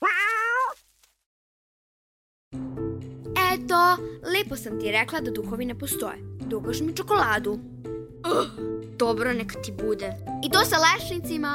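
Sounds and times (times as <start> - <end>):
old cat meowing: 0.0 - 0.8
speech: 3.6 - 7.7, 8.3 - 11.5.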